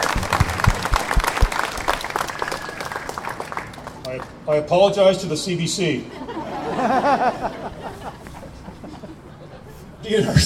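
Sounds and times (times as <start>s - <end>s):
audience applause: 0.0s - 4.3s
speech: 4.2s - 7.6s, 10.1s - 10.4s
laughter: 6.1s - 10.4s.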